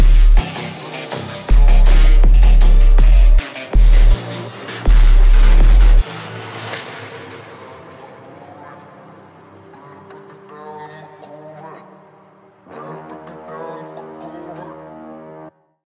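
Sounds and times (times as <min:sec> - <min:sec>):
low bass: 0:00.0 - 0:00.6, 0:01.2 - 0:06.1.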